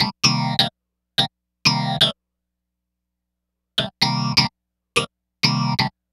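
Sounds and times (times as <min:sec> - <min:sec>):
clavinet: 0:00.0 - 0:02.2, 0:03.8 - 0:06.0.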